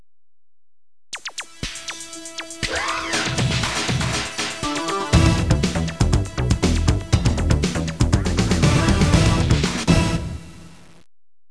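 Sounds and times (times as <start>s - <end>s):
dance music: 1.2s - 10.4s.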